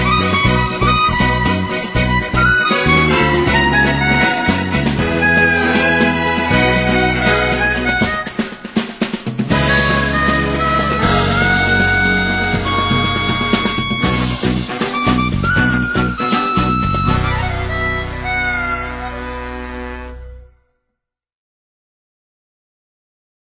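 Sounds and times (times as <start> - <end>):
chromatic harmonica sample: 0.0 - 8.5, 9.5 - 20.4.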